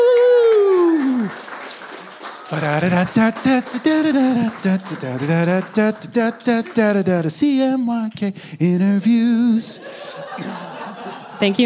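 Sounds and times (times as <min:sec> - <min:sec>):
loud cheering whoop: 0:00.0 - 0:03.4
audience applause: 0:00.0 - 0:09.2, 0:09.8 - 0:11.6
laughter: 0:00.0 - 0:11.6
speech: 0:02.6 - 0:10.7, 0:11.4 - 0:11.6.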